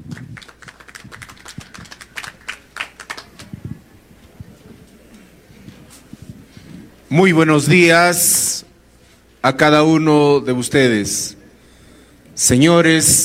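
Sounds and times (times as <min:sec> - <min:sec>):
audience applause: 0:00.0 - 0:03.5
speech: 0:07.1 - 0:08.6, 0:09.4 - 0:11.4, 0:12.4 - 0:13.2.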